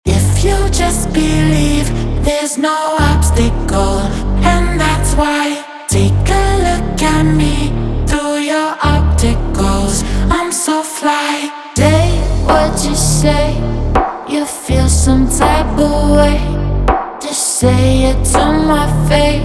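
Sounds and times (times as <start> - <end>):
vocals: 0.0 - 19.4.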